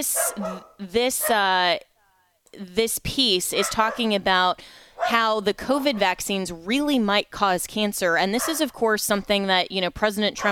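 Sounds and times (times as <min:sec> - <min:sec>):
three dogs barking and yipping while playing: 0:00.0 - 0:01.5, 0:03.6 - 0:04.2, 0:05.0 - 0:06.2, 0:08.3 - 0:08.7
speech: 0:00.0 - 0:01.9, 0:02.5 - 0:10.4.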